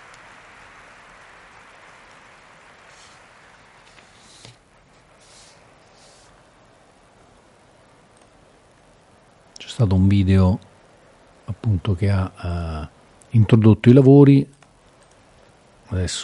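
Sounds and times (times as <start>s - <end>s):
audience applause: 0.0s - 4.4s
speech: 9.7s - 10.7s, 11.6s - 14.6s, 15.9s - 16.2s.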